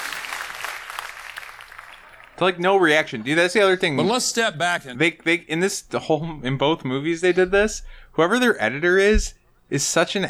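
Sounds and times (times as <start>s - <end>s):
applause: 0.0s - 3.4s
speech: 2.4s - 10.2s.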